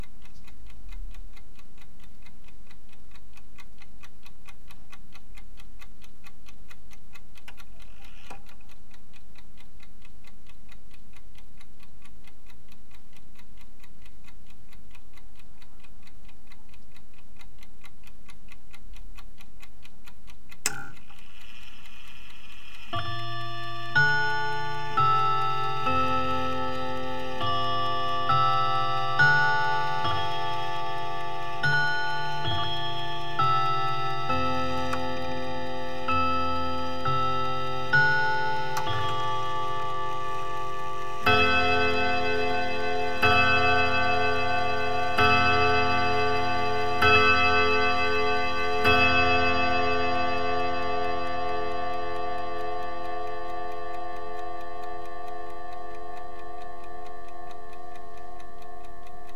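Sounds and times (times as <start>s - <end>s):
grandmother's clock chiming five o'clock in the Big Ben style: 20.6s - 59.3s.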